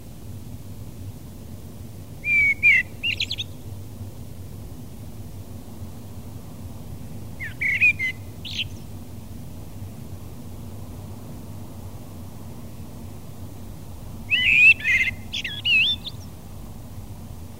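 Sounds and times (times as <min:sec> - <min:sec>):
blackbird: 0:02.2 - 0:03.6, 0:07.4 - 0:08.8, 0:14.3 - 0:16.3.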